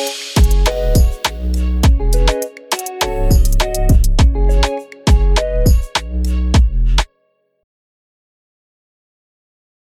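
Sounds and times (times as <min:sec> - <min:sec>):
afrobeat music: 0:00.0 - 0:07.1.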